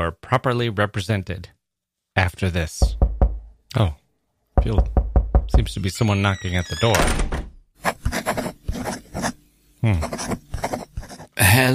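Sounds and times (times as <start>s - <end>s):
speech: 0.0s - 1.6s, 2.2s - 3.0s, 3.7s - 4.0s, 4.6s - 7.4s, 9.8s - 10.4s
pen scratching on paper: 7.8s - 11.4s.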